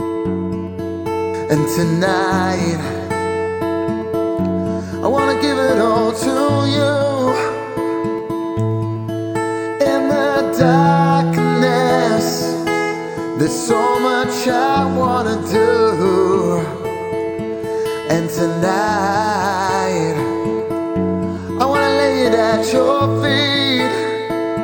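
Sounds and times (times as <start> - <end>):
acoustic music: 0.0 - 24.6.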